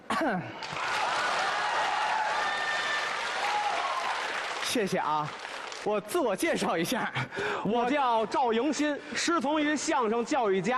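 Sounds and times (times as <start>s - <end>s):
speech: 0.2s - 0.8s, 4.7s - 10.7s
audience applause: 0.6s - 5.9s.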